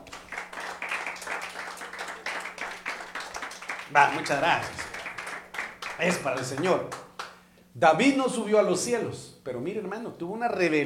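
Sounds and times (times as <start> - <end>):
audience applause: 0.0 - 7.3
speech: 3.9 - 4.8, 6.0 - 7.0, 7.8 - 10.8.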